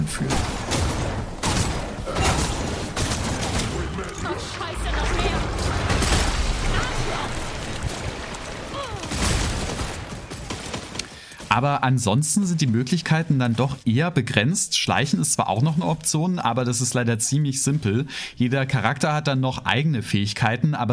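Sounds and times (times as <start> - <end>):
Redfall video game gunfire: 0.0 - 11.8
rumbling combat noise: 0.0 - 11.8
speech: 11.6 - 20.9.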